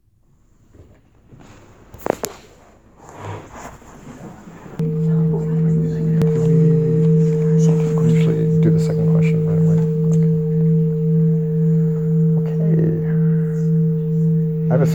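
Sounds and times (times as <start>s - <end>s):
bell ringing to mark time: 4.8s - 14.9s.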